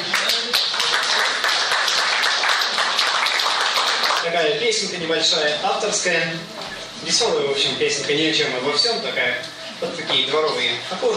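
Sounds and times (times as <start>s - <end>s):
audience applause: 0.0s - 4.2s
speech: 4.4s - 11.1s.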